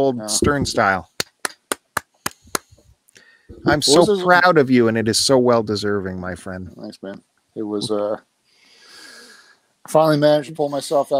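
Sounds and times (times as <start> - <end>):
speech: 0.0 - 1.1, 3.6 - 8.3, 9.8 - 11.1
soundboard applause effect claps: 0.4 - 2.8.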